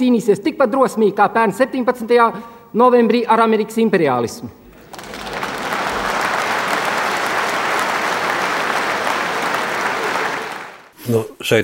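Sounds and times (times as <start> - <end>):
speech: 0.0 - 4.6, 11.1 - 11.6
large audience applauding in a hall: 4.7 - 11.0.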